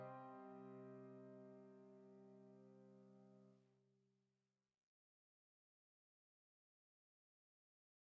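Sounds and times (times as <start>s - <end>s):
new age piano: 0.0s - 3.4s.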